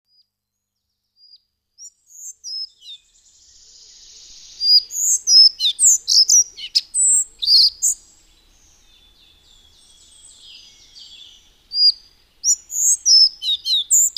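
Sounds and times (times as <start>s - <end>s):
Collared flycatcher song of high squeaky whistled notes: 4.1s - 8.0s, 11.7s - 14.1s.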